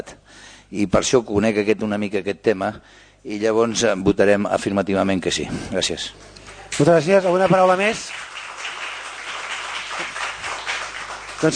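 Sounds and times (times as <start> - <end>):
speech: 0.0 - 8.3
group applauding: 6.4 - 11.5.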